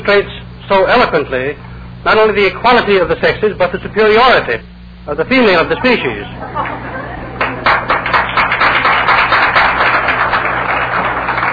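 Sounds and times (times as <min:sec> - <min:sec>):
speech: 0:00.0 - 0:06.9
audience applause: 0:06.6 - 0:11.5.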